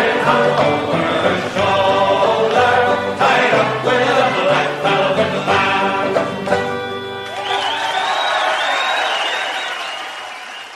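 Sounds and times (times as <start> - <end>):
last held musical notes of a song: 0.0 - 8.1
speech: 0.3 - 1.6
cheering, whoops and whistles: 6.8 - 10.7
audience applause after song: 7.0 - 10.7.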